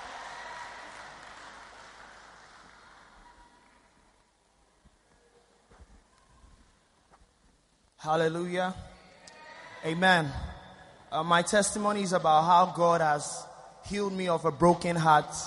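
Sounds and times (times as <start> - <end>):
audience applause welcoming a speaker at a church gathering: 0.0 - 4.2
speech: 8.0 - 8.9, 9.8 - 15.4.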